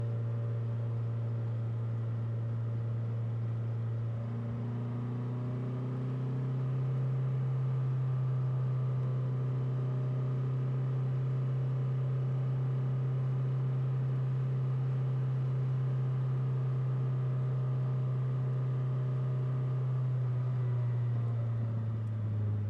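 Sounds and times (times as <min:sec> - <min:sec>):
Citroen C5 exhaust driving at steady RPMs: 0:00.0 - 0:22.6.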